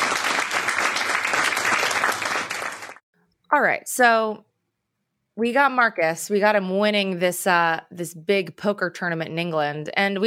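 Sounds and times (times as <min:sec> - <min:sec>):
audience applause: 0:00.0 - 0:03.0
speech: 0:03.5 - 0:04.5, 0:05.4 - 0:10.2.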